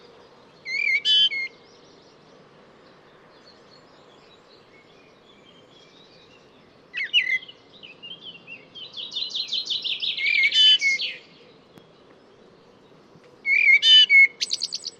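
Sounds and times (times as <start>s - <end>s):
bird song of quick varied whistled notes with sharp chirps and buzzy elements: 0.0s - 14.9s.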